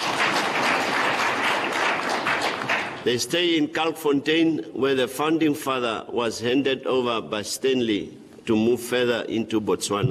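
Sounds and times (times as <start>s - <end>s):
audience applause at an Omaheke community event for honoured guests: 0.0s - 3.0s
speech: 3.0s - 10.0s.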